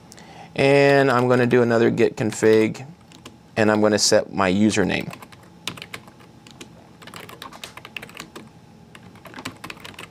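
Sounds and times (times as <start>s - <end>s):
speech: 0.6s - 3.0s, 3.6s - 5.3s
computer keyboard typing: 0.8s - 3.4s, 4.9s - 10.0s.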